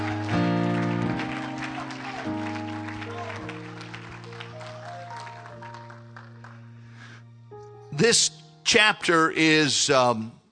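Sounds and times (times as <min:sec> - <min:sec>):
audience clapping: 0:00.0 - 0:07.2
speech: 0:08.0 - 0:10.4.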